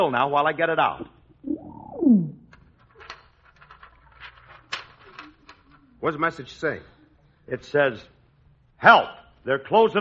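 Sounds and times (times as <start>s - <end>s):
speech: 0.0s - 1.2s, 6.0s - 6.9s, 7.5s - 8.1s, 8.8s - 10.0s
pigeon cooing: 1.4s - 2.5s.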